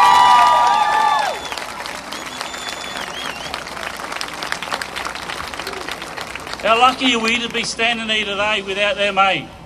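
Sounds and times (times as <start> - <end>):
crowd clapping and cheering: 0.0 - 7.7
speech: 6.7 - 9.6.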